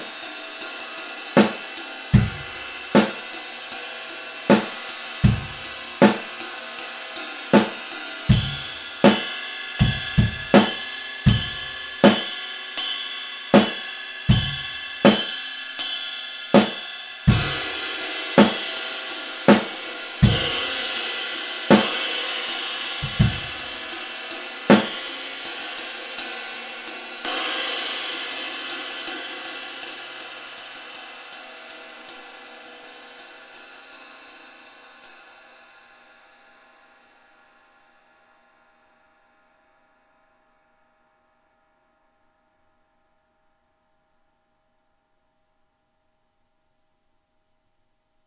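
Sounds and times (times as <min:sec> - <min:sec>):
rock ride cymbal: 0:00.0 - 0:38.2.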